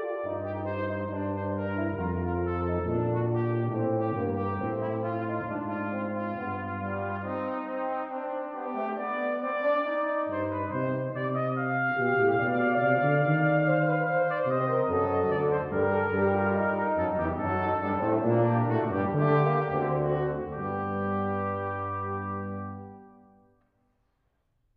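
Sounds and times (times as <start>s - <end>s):
brass harmonics: 0.1s - 23.4s.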